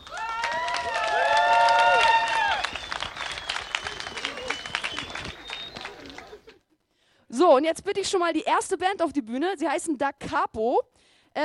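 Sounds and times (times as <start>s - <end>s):
audience applause: 0.0s - 6.5s
speech: 7.6s - 11.4s.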